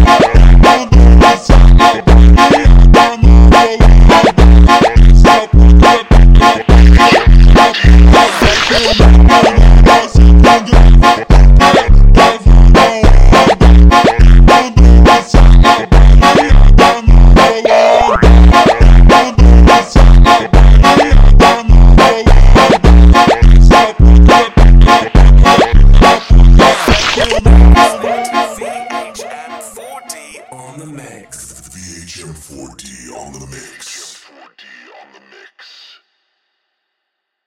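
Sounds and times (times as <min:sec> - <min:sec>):
super slowed funk music: 0:00.0 - 0:29.8.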